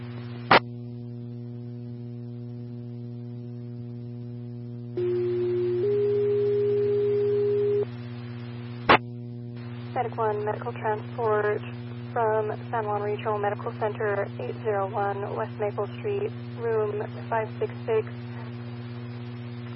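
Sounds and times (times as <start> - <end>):
dispatch alert tones: 5.0 - 7.8
speech: 10.0 - 18.2.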